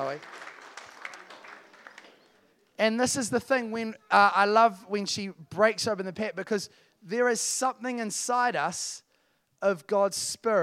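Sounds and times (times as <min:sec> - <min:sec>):
speech: 0:00.0 - 0:00.5, 0:02.8 - 0:09.0, 0:09.6 - 0:10.6
crowd applause: 0:00.0 - 0:02.6.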